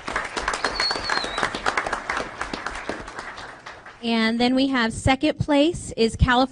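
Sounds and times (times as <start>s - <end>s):
crowd applause: 0.0s - 4.0s
faint high whistle: 0.5s - 1.6s
speech: 4.0s - 6.4s.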